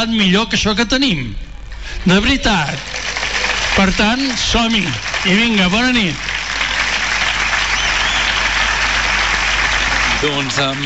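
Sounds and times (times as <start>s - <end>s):
speech: 0.0s - 1.4s, 2.0s - 3.0s, 3.8s - 6.3s, 10.2s - 10.8s
crowd applause in a town square: 2.1s - 10.8s.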